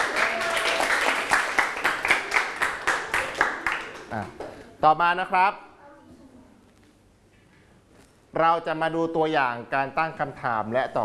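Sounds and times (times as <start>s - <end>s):
small group of people clapping in a classroom: 0.0s - 4.6s
speech: 4.8s - 5.6s, 8.4s - 11.0s.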